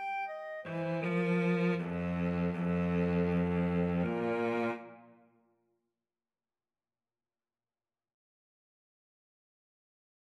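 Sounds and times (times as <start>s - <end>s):
clarinet and cello duet: 0.0s - 5.2s.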